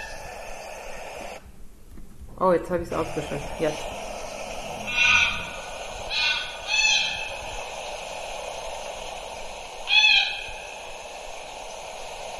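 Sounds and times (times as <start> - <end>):
hiss: 0.0 - 12.3
speech: 2.4 - 4.0
recorded single bird calling: 3.0 - 12.3.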